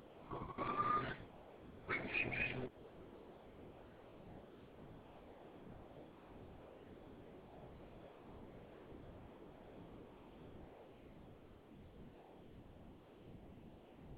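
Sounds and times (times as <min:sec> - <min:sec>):
bird twittering in rising and falling whistled notes: 0:01.9 - 0:02.7.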